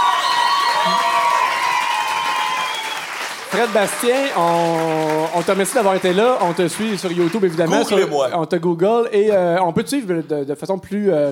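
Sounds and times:
people applauding: 0.0s - 8.3s
speech: 3.5s - 11.3s.

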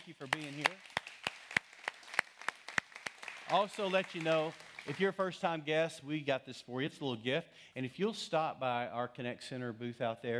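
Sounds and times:
audience clapping in rhythm: 0.0s - 5.6s
speech: 0.1s - 0.9s, 3.5s - 10.3s.

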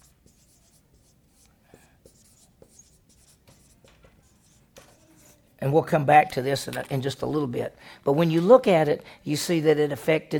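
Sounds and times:
pen strokes of handwriting: 0.0s - 5.5s
speech: 5.6s - 10.3s.

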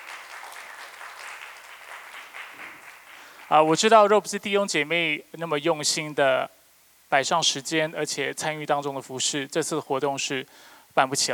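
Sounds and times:
audience applause: 0.0s - 3.7s
speech: 3.5s - 11.3s.

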